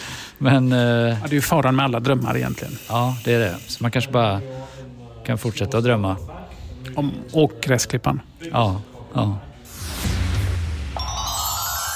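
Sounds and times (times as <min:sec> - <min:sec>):
speech: 0:00.4 - 0:09.5
telephone ringing: 0:11.0 - 0:11.9.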